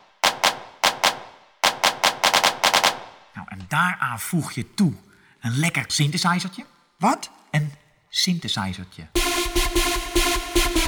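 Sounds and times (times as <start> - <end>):
drum machine handclap beat: 0.0 - 3.2, 9.2 - 10.8
speech: 3.4 - 9.6.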